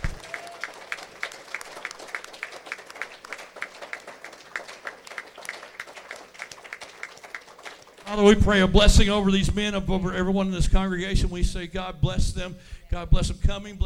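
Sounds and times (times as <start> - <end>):
audience clapping hands: 0.0 - 8.3
speech: 8.1 - 13.8.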